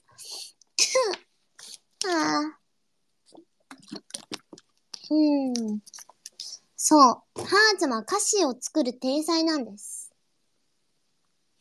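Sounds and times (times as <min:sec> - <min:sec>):
cough: 0:00.8 - 0:01.2
speech: 0:05.1 - 0:06.0, 0:06.9 - 0:09.9.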